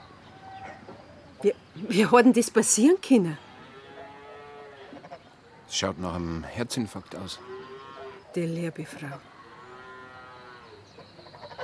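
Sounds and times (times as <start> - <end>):
speech: 1.4 - 3.4, 5.8 - 7.5, 8.4 - 9.3
cow mooing: 3.2 - 5.1, 7.3 - 8.2, 9.0 - 10.8.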